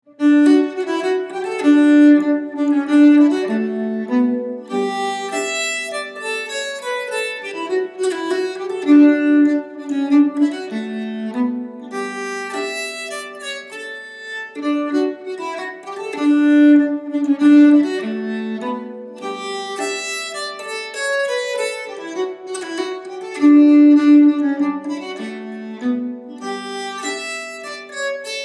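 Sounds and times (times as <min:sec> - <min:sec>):
nyckelharpa playing a polska: 0:00.1 - 0:28.4.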